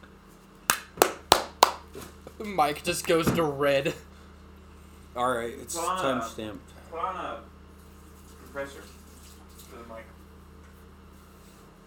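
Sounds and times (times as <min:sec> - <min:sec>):
hand clapping: 0:00.7 - 0:01.9
speech: 0:02.4 - 0:04.1, 0:05.2 - 0:07.5, 0:08.5 - 0:09.0.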